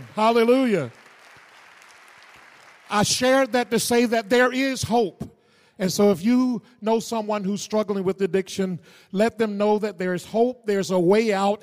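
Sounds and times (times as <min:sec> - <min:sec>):
audience clapping: 0:00.0 - 0:04.4
speech: 0:00.2 - 0:01.0, 0:02.9 - 0:11.6.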